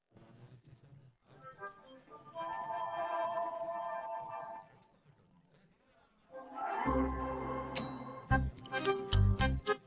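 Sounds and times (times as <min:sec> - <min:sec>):
happy instrumental music: 0:01.6 - 0:04.7, 0:06.3 - 0:09.8.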